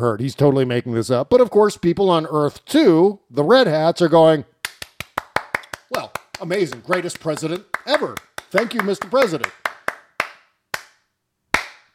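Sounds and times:
speech: 0:00.0 - 0:04.5, 0:06.4 - 0:09.6
person slow clapping: 0:04.6 - 0:11.9.

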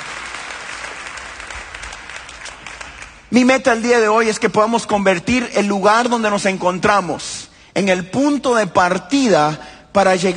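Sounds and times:
audience applauding: 0:00.0 - 0:03.3
speech: 0:03.3 - 0:10.3.

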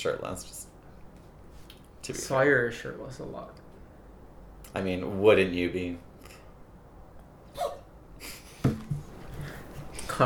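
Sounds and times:
speech: 0:00.0 - 0:00.7, 0:02.0 - 0:03.6, 0:04.7 - 0:06.1
sneeze: 0:07.5 - 0:07.9.

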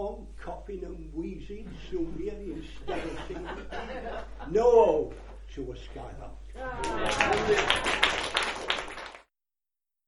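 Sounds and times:
speech: 0:00.1 - 0:08.2
laughter: 0:02.6 - 0:04.7, 0:06.6 - 0:08.3
applause: 0:06.8 - 0:09.3.

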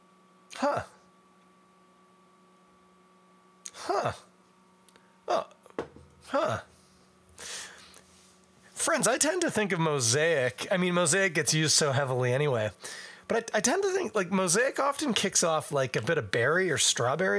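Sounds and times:
low steady hum: 0:00.0 - 0:17.3
speech: 0:00.6 - 0:00.9, 0:04.0 - 0:04.2, 0:09.0 - 0:17.3
person sniffing a glass of beer: 0:06.3 - 0:08.3.

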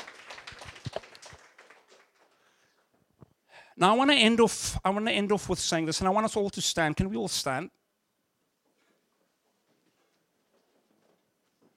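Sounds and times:
audience applause: 0:00.0 - 0:02.7
speech: 0:03.8 - 0:07.8.

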